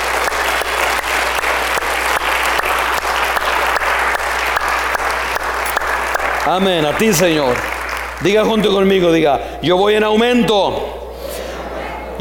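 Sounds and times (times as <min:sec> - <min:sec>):
church congregation applauding: 0:00.0 - 0:09.2
low steady hum: 0:00.0 - 0:12.1
speech: 0:06.5 - 0:11.0.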